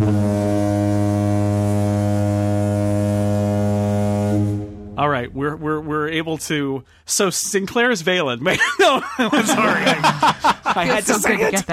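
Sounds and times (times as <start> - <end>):
spoiler warning horn blast: 0.0 - 6.2
speech: 5.2 - 11.7
laughter: 8.5 - 11.7.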